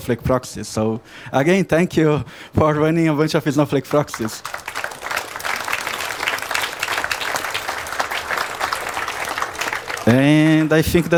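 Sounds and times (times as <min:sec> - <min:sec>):
speech: 0:00.0 - 0:04.8, 0:10.1 - 0:11.1
audience applause: 0:03.9 - 0:11.1.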